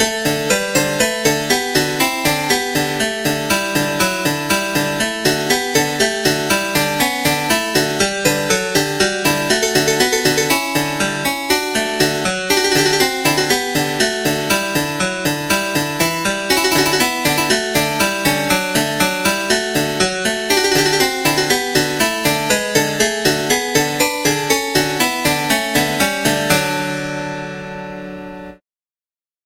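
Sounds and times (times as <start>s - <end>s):
baroque keyboard suite gavotte in D minor: 0.0s - 28.6s.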